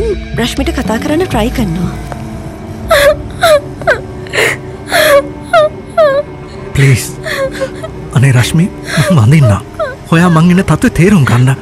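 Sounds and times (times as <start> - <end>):
speech: 0.4 - 2.2, 6.8 - 11.5
woman crying hard: 2.8 - 8.1, 8.8 - 10.6.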